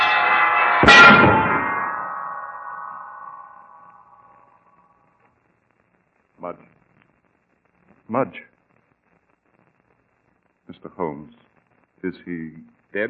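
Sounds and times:
heavy crashing thud of falling bell: 0.0s - 4.0s
large church bell ringing: 0.0s - 4.5s
speech: 8.1s - 8.5s, 10.7s - 11.4s, 12.0s - 13.0s.

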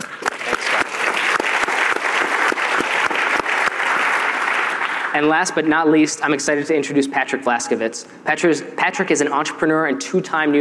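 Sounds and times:
audience applause: 0.0s - 5.1s
speech: 5.2s - 10.6s.

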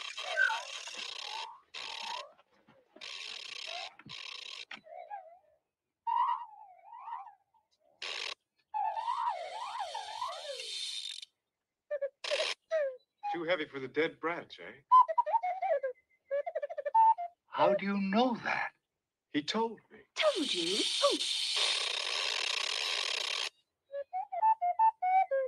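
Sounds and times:
mechanical owl clicking and whirring: 0.0s - 2.3s, 3.0s - 4.8s, 8.0s - 11.3s, 12.2s - 12.6s, 20.2s - 23.5s
mechanical owl wheezy warbling whistles: 0.0s - 2.4s, 6.1s - 11.3s, 11.9s - 13.8s, 14.8s - 18.2s, 20.2s - 25.4s
speech: 13.4s - 14.9s, 17.6s - 18.7s, 19.3s - 21.5s.

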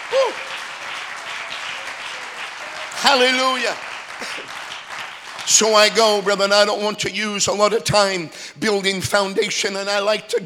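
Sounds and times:
audience clapping hands: 0.0s - 7.0s
speech: 0.1s - 0.6s, 3.0s - 4.6s, 5.5s - 10.4s.

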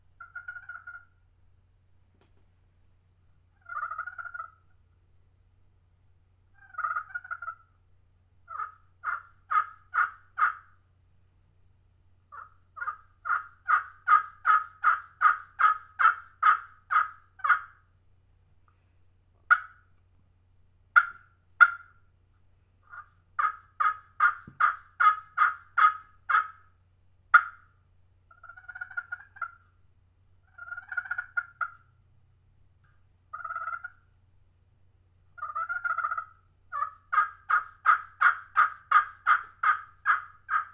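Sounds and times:
turkey call yelps and clucks played on its slate surface: 0.2s - 1.2s, 3.6s - 4.8s, 6.6s - 7.7s, 8.5s - 10.8s, 12.3s - 17.9s, 19.5s - 19.8s, 21.0s - 22.0s, 22.9s - 29.7s, 30.4s - 31.9s, 33.3s - 34.1s, 35.3s - 40.7s.

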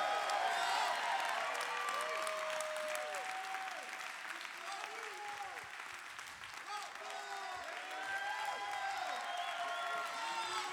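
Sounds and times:
audience clapping: 0.0s - 10.7s.

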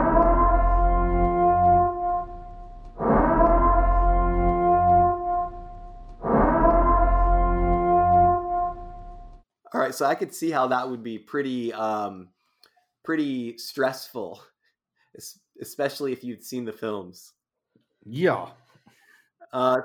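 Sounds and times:
purge siren used as curfew warning: 0.0s - 9.4s
speech: 9.9s - 12.4s, 13.0s - 14.5s, 15.2s - 17.4s, 18.0s - 18.6s, 19.5s - 19.8s.

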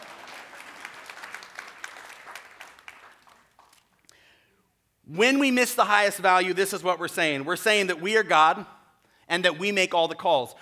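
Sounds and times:
audience clapping: 0.0s - 4.2s
speech: 5.1s - 10.6s.

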